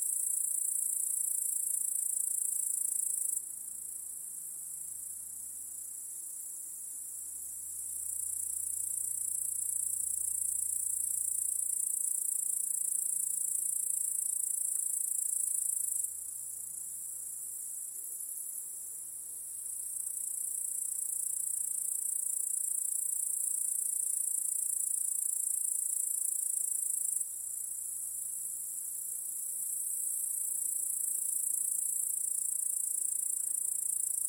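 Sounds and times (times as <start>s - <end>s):
cricket chorus: 0.0s - 34.2s.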